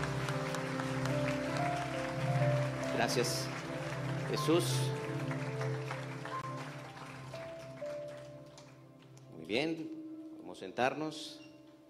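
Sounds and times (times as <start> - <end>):
crowd applauding: 0.0 - 9.2
speech: 3.0 - 3.5, 4.3 - 5.0, 9.5 - 11.4.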